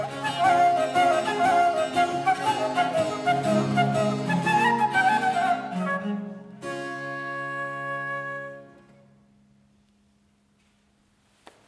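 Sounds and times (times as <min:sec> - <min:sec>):
gigue from a suite in D major played in concert: 0:00.0 - 0:08.8.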